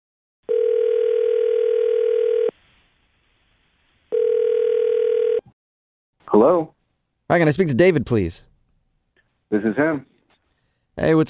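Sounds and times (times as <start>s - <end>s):
buzzy telephone ringback tone: 0.5s - 2.5s, 4.1s - 5.5s
speech: 6.4s - 6.8s, 7.3s - 8.5s, 9.5s - 10.1s, 11.0s - 11.2s.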